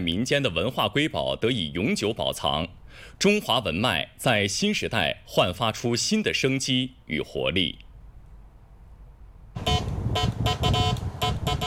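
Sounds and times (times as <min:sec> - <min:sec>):
speech: 0:00.0 - 0:07.8
1970s telegraph transmitter control box beeping: 0:09.6 - 0:11.6.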